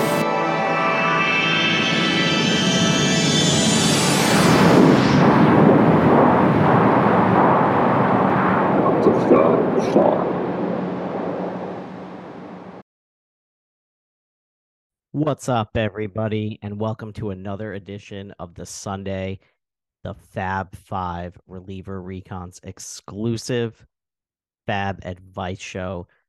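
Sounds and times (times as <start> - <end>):
rising whistling sweep of artillery sound effect: 1.1 - 12.8
artillery firing roaring blast: 3.2 - 12.8
speech: 15.2 - 23.9, 24.7 - 26.2.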